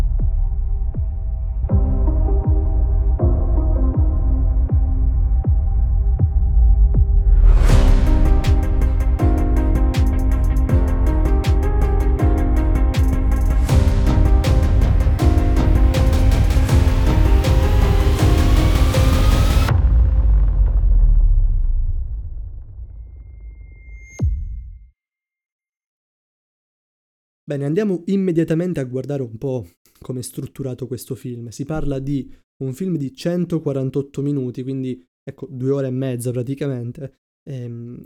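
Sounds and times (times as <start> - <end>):
instrumental intro theme tune: 0.3 - 22.4
speech: 27.5 - 38.0.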